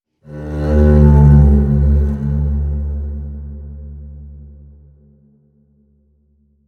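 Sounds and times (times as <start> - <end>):
contrabass: 0.2 - 5.3.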